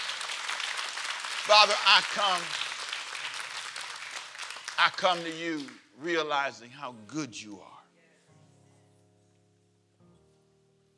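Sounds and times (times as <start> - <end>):
church congregation clapping hands: 0.0 - 6.6
speech: 1.5 - 2.6, 4.8 - 7.7.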